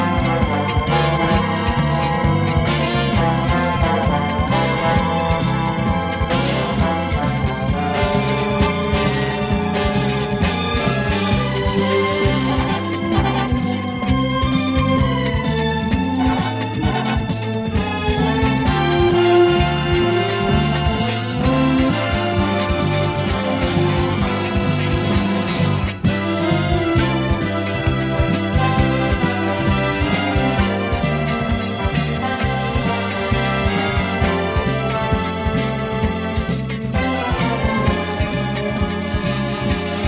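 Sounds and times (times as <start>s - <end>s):
lyrical background music: 0.0s - 40.0s.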